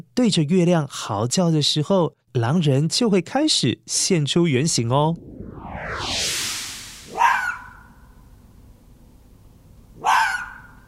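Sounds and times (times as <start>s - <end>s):
speech: 0.0s - 6.2s
rising airy whoosh: 4.7s - 8.1s
fox calling with sharp harsh bark-like shrieks: 10.0s - 10.8s.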